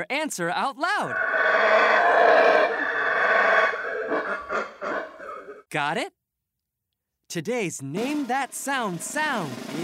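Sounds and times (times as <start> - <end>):
speech: 0.0 - 2.8, 5.7 - 6.2, 7.3 - 9.8
howler monkey roaring: 1.1 - 5.6.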